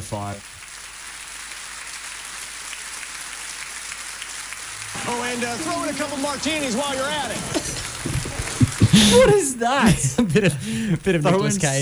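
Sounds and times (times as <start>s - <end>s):
speech: 0.0s - 0.6s, 5.1s - 8.2s, 9.0s - 11.8s
sympathy applause sound effect: 0.0s - 9.4s
laughter: 4.8s - 11.8s.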